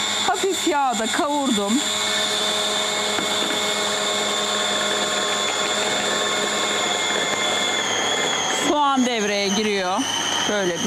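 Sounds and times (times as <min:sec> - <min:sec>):
whisking a batter of flour and cold water: 0:00.0 - 0:08.7
speech: 0:00.6 - 0:03.2, 0:09.0 - 0:10.8.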